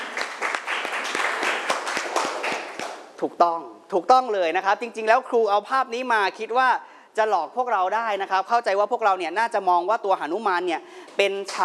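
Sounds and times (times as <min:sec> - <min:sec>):
classroom students clapping: 0:00.0 - 0:03.1
speech: 0:03.2 - 0:11.6.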